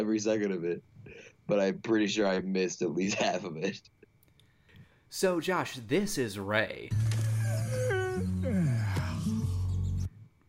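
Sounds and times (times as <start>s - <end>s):
speech: 0.0s - 4.0s, 5.1s - 7.8s
animal yawning: 7.2s - 10.1s.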